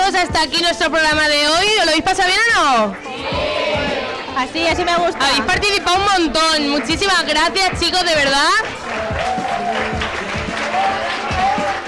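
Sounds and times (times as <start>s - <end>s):
speech: 0.1s - 3.6s, 4.4s - 8.8s
audience applause: 8.2s - 11.8s.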